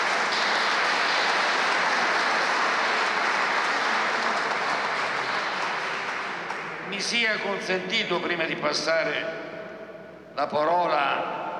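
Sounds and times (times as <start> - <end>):
audience applause: 0.0 - 7.2
speech: 7.0 - 9.5, 10.4 - 11.4.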